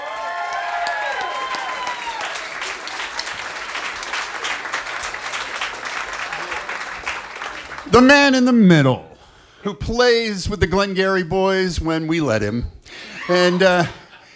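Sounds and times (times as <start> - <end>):
audience applause: 0.0 - 9.0
laughter: 5.0 - 8.9, 11.8 - 14.3
speech: 7.9 - 14.0.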